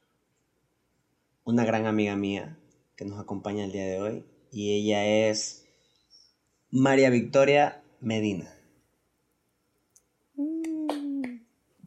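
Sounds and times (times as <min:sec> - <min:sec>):
speech: 0:01.5 - 0:05.6, 0:06.7 - 0:08.6
one person clapping hands: 0:10.6 - 0:11.4.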